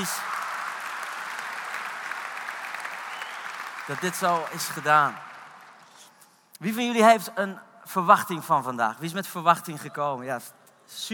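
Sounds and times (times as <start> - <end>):
speech: 0.0 - 0.3, 3.9 - 5.3, 6.6 - 11.1
audience applause: 0.0 - 5.9.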